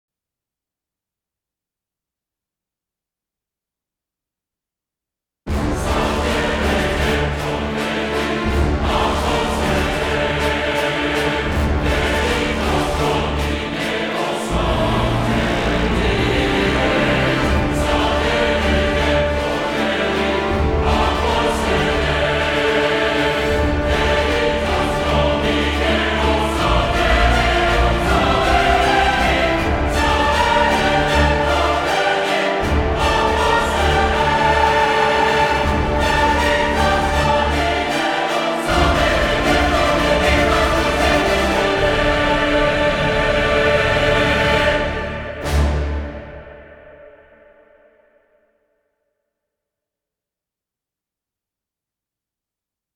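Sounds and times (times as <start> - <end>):
choir singing: 5.5 - 47.9
orchestra playing: 5.6 - 46.7.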